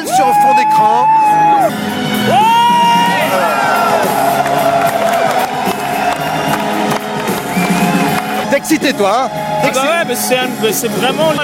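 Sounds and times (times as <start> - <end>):
large concert crowd cheering with whoops and high shouts: 0.0 - 10.6
speech: 0.2 - 3.8, 8.6 - 11.4
large concert crowd applauding: 2.3 - 10.7.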